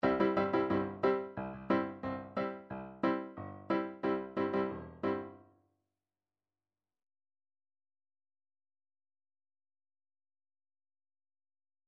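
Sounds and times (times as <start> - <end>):
dixieland chord lines: 0.0 - 5.4.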